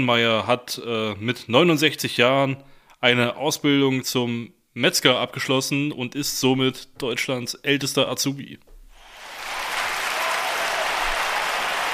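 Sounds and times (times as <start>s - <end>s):
speech: 0.0s - 8.7s
audience applause: 9.0s - 11.9s.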